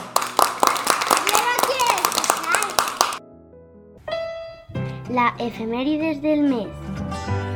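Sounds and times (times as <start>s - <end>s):
applause: 0.0s - 3.2s
speech: 5.1s - 7.4s.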